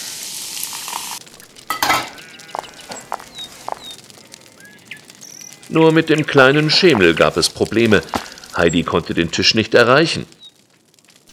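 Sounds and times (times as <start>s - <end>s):
cheese sizzling over a fire: 0.0s - 11.3s
faint bird chirps: 1.2s - 6.8s
speech: 5.7s - 10.4s.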